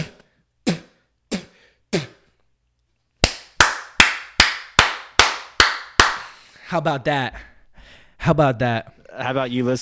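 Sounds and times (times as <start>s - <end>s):
one person clapping hands rapidly: 3.2s - 6.4s
speech: 6.7s - 9.7s.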